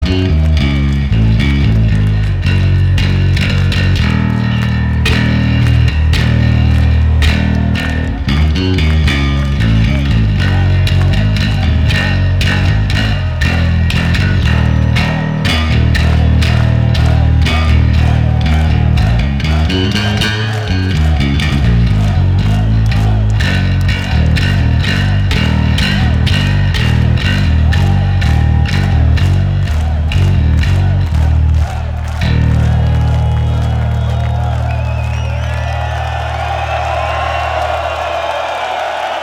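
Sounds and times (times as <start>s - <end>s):
bass solo: 0.0s - 39.1s.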